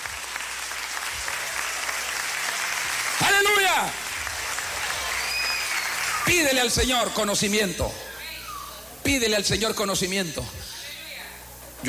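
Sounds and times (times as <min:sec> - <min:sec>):
audience applauding loudly: 0:00.0 - 0:07.3
speech: 0:03.4 - 0:04.0, 0:06.3 - 0:08.1, 0:09.0 - 0:10.7.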